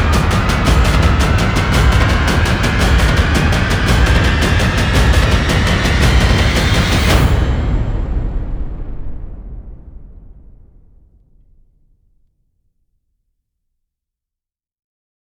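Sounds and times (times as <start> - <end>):
drums building: 0.0 - 11.0.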